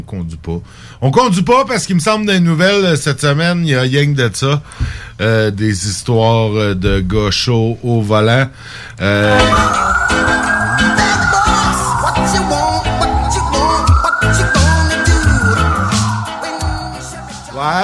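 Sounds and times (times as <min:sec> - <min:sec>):
speech: 0:00.0 - 0:11.2
police siren wailing: 0:09.2 - 0:17.8
punchy music jingle with heavy bass and steady beat: 0:09.3 - 0:17.8.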